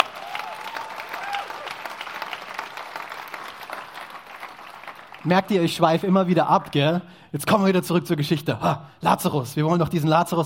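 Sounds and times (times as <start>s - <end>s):
audience applause: 0.0s - 5.6s
speech: 5.2s - 10.4s.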